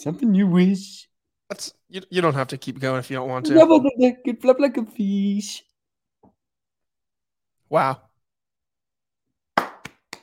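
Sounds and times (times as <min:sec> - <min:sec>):
speech: 0:00.0 - 0:05.7, 0:07.7 - 0:08.0
hand claps: 0:09.6 - 0:10.2.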